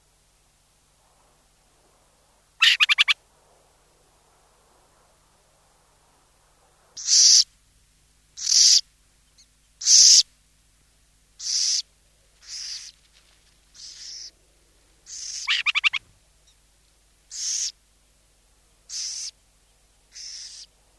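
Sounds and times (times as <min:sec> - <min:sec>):
burrowing owl giving harsh hissing rasps: 0:02.6 - 0:03.2, 0:07.0 - 0:07.5, 0:08.4 - 0:08.8, 0:09.8 - 0:10.2, 0:11.4 - 0:12.9, 0:13.8 - 0:14.3, 0:15.1 - 0:16.0, 0:17.3 - 0:17.8, 0:18.9 - 0:19.4, 0:20.1 - 0:20.7.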